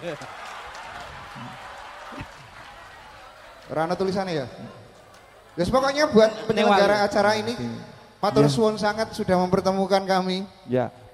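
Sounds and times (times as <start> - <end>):
speech: 0.0 - 0.5, 1.4 - 2.4, 3.7 - 4.8, 5.6 - 11.1
audience applause: 0.0 - 6.1.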